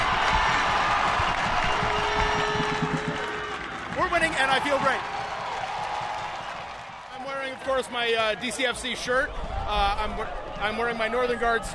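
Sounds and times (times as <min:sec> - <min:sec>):
crowd clapping: 0:00.0 - 0:08.7
stadium crowd roaring and cheering: 0:00.0 - 0:11.7
speech: 0:07.8 - 0:11.7.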